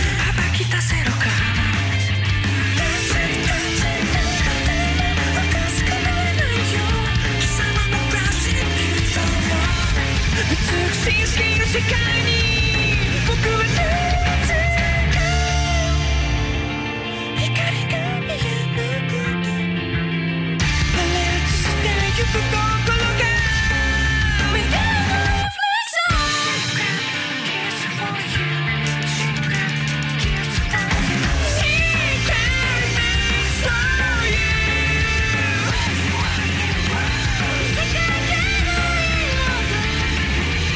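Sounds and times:
strained vocals: 0.0 - 16.2, 20.8 - 40.7
driving drums: 0.0 - 40.7
heavy guitars: 0.0 - 40.7
loud dense rock song: 0.0 - 40.7.

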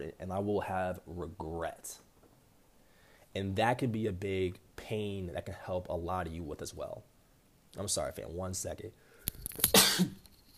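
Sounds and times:
speech: 0.0 - 2.1, 3.4 - 7.1, 7.7 - 10.2
sneeze: 9.7 - 10.2.

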